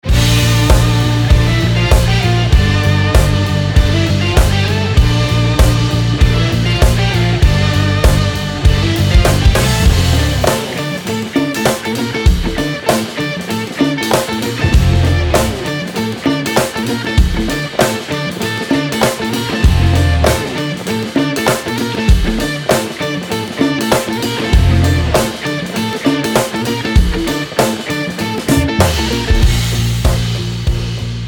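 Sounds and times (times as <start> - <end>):
rock pop band: 0.0 - 31.2.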